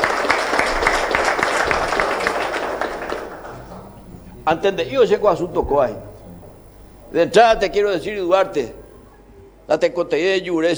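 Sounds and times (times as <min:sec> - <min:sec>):
audience applause: 0:00.0 - 0:09.4
laughter: 0:00.0 - 0:09.6
speech: 0:04.5 - 0:06.1, 0:07.1 - 0:08.8, 0:09.7 - 0:10.7.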